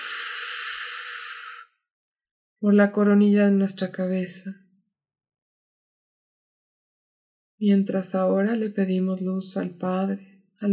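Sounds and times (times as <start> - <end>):
deep exhalation during a guided breathing meditation: 0.0 - 1.6
speech: 2.6 - 4.6, 7.6 - 10.7.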